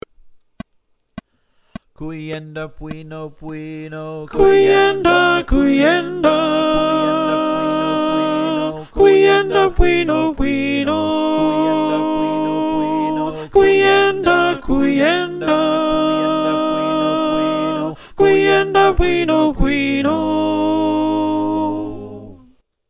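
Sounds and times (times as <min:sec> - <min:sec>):
choir with soprano: 0:04.4 - 0:22.4.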